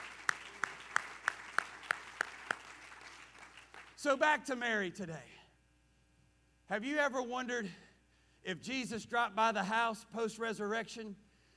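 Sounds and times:
audience clapping hands in a steady rhythm: 0.0s - 4.2s
speech: 4.0s - 5.3s, 6.7s - 7.8s, 8.4s - 11.2s.

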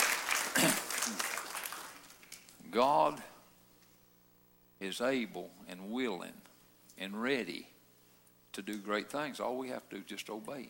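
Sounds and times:
audience clapping: 0.0s - 2.5s
speech: 2.7s - 3.3s, 4.8s - 6.4s, 7.0s - 7.7s, 8.6s - 10.6s.

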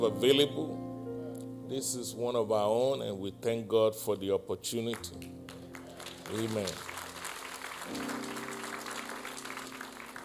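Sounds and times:
speech: 0.0s - 0.8s, 1.7s - 5.5s, 6.3s - 6.9s, 7.9s - 8.4s
audience clapping: 4.9s - 10.2s.

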